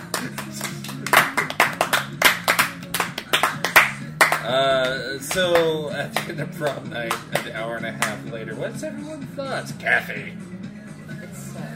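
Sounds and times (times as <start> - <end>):
people clapping: 0.0 - 8.3
speech: 4.5 - 10.5.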